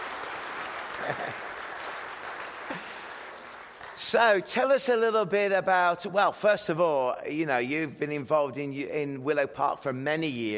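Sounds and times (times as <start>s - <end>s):
audience applause: 0.0s - 4.3s
laughter: 0.9s - 1.6s
speech: 1.1s - 1.5s, 4.1s - 10.5s.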